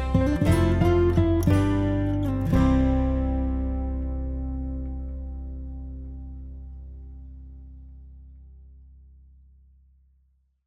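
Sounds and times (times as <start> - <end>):
instrumental music: 0.0 - 8.5.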